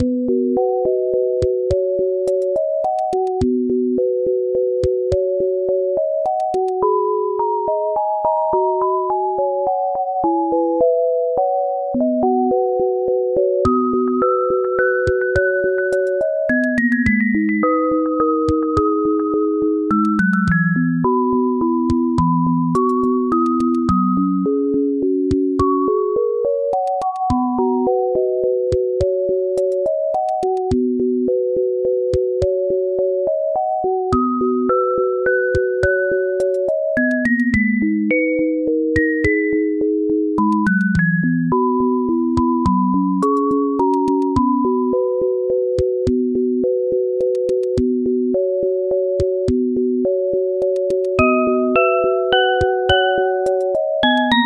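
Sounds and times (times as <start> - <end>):
lullaby: 0.0 - 54.4.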